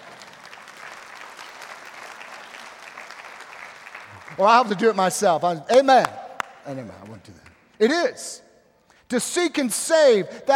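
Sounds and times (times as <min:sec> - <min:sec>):
audience applause: 0:00.0 - 0:05.0
speech: 0:04.3 - 0:08.4, 0:09.1 - 0:10.5.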